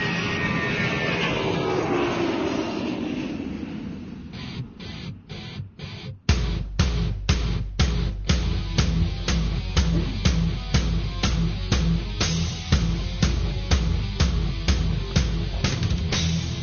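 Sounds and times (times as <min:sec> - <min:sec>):
airplane engine roar during takeoff: 0:00.0 - 0:06.3, 0:08.6 - 0:16.6
pounding rhythmic beat with heavy bass: 0:04.8 - 0:16.6.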